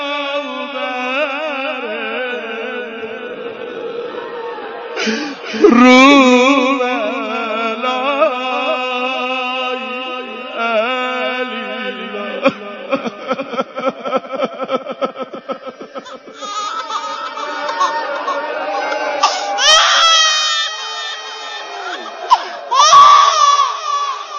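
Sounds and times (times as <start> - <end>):
laughter: 1.0 - 24.3
speech: 5.0 - 6.2
baby crying: 15.9 - 24.3.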